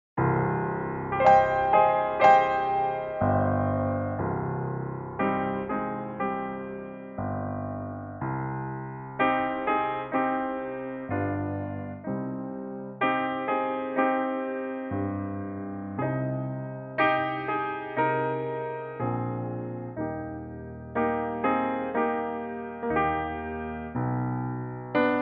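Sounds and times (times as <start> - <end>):
piano: 0.2 - 25.1.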